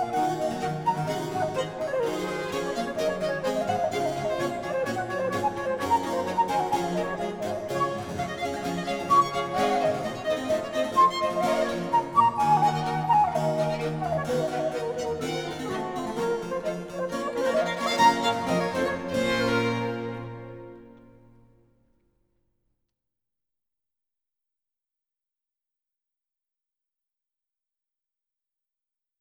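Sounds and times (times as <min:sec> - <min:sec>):
orchestral suite in B minor: 0:00.0 - 0:21.6.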